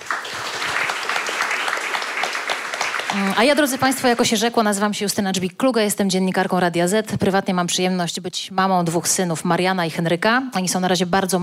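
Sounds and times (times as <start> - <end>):
audience applause: 0.0 - 4.0
speech: 3.1 - 11.4.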